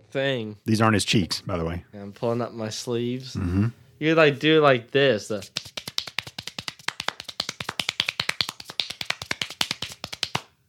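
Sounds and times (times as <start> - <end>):
speech: 0.1 - 5.7
rapid hand clapping: 5.4 - 10.5.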